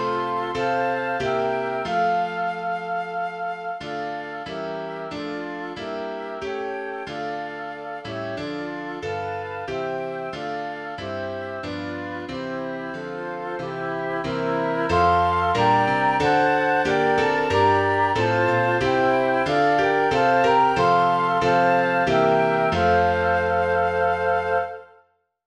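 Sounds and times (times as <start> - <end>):
flute: 0.0 - 25.1
piano: 0.0 - 25.1.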